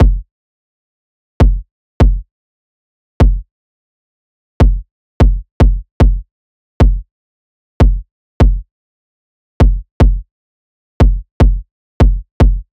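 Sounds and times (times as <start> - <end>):
kick drum loop: 0.0 - 0.2, 1.4 - 2.2, 3.2 - 3.4, 4.6 - 6.2, 6.8 - 7.0, 7.8 - 8.6, 9.6 - 10.2, 11.0 - 12.7.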